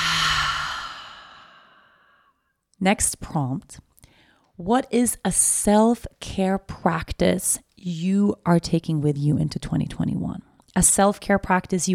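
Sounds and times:
deep breath out during a guided breathing exercise: 0.0s - 2.4s
speech: 2.8s - 3.9s, 4.6s - 11.9s.

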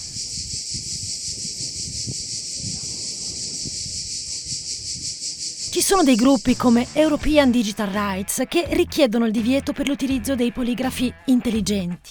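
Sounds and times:
cicadas chirring: 0.0s - 7.1s
speech: 5.8s - 12.1s.

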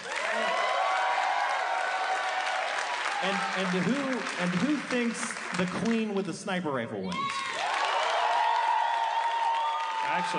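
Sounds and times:
scattered cheers: 0.0s - 4.3s, 7.1s - 10.3s
audience applause: 0.0s - 6.2s, 7.1s - 10.3s
speech: 3.2s - 7.5s, 10.2s - 10.3s.

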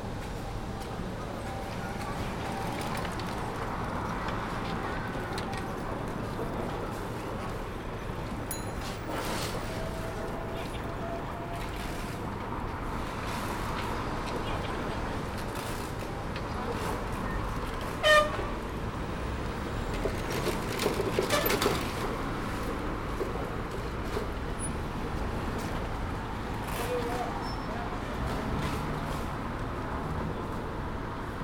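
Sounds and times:
traffic rumble at Peking University south gate: 0.0s - 31.4s.

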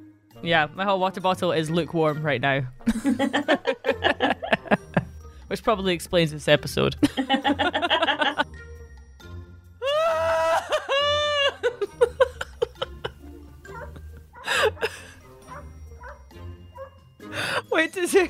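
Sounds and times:
person's voice: 0.4s - 2.7s, 5.5s - 7.5s, 17.4s - 18.2s
speech: 0.4s - 3.8s, 5.5s - 7.9s
laughter: 2.8s - 5.1s, 7.0s - 8.5s, 9.9s - 15.2s
neighbour's dogs howling: 13.6s - 17.0s.

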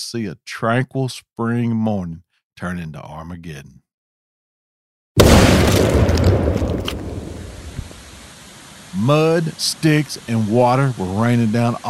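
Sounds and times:
speech: 0.0s - 3.8s, 5.8s - 7.1s, 8.9s - 11.8s
massive explosion blasting open a dam: 5.2s - 8.1s
crackles: 5.2s - 8.8s.

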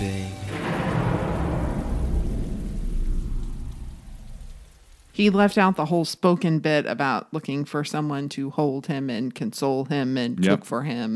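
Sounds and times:
rain hissing: 0.0s - 6.1s
thunder rumbling: 0.4s - 5.8s
speech: 5.2s - 11.1s.

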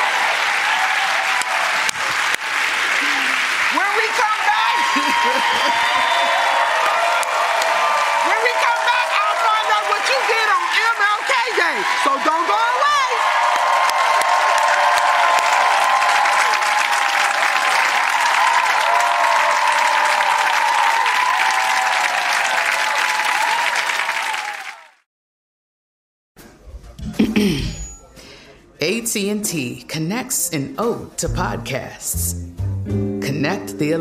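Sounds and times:
shouts and whoops: 0.0s - 1.9s, 3.0s - 24.9s
crowd applause: 0.0s - 25.0s
speech: 27.4s - 27.8s, 29.2s - 34.0s.

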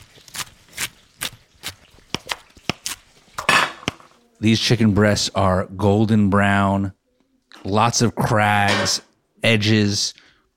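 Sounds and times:
chopping lettuce and pickles: 0.0s - 3.0s
speech: 4.4s - 7.0s, 7.6s - 10.2s.

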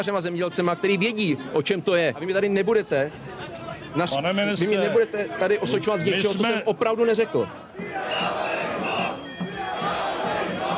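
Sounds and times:
speech: 0.0s - 8.0s
protest crowd shouting slogans: 5.6s - 10.7s
small drums: 7.7s - 10.7s.

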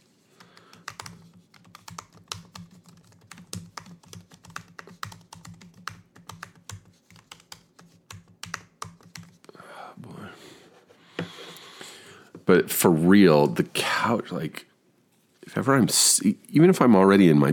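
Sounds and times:
rapid typing on a computer keyboard: 0.4s - 9.5s
speech: 12.5s - 14.7s, 15.5s - 17.5s.

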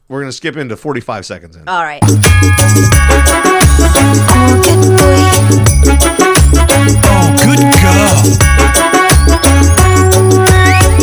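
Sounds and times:
speech: 0.1s - 9.0s
reggae track with 808 bass and drum beat: 2.0s - 11.0s.

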